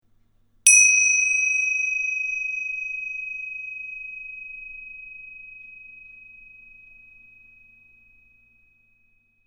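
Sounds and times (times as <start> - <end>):
cymbal: 0.7 - 6.5.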